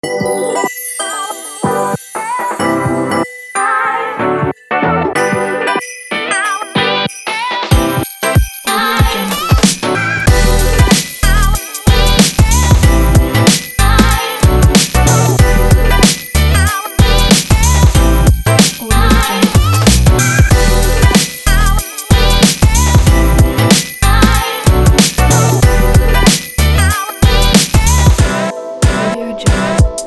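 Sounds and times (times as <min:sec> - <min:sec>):
Christmas hip hop music: 0:00.0 - 0:30.0.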